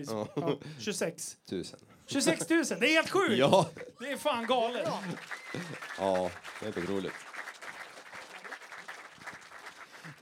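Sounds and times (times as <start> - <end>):
speech: 0.0 - 7.3
audience applause: 4.2 - 10.2.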